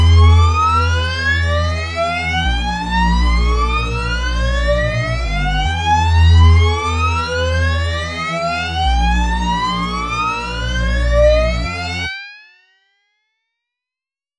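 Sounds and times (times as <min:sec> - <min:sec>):
hoover synth: 0:00.0 - 0:12.1.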